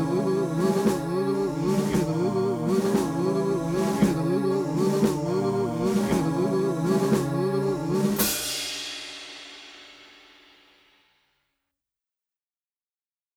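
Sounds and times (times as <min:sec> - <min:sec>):
combat march music: 0:00.0 - 0:08.3.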